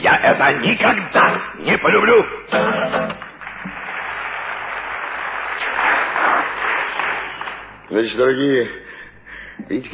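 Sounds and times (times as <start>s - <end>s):
speech: 0.2s - 3.1s, 7.9s - 8.8s, 9.6s - 9.9s
audience applause: 3.0s - 7.9s.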